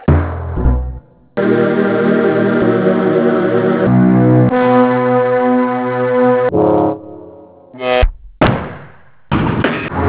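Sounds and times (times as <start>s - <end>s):
raw music samples: 0.0s - 8.0s.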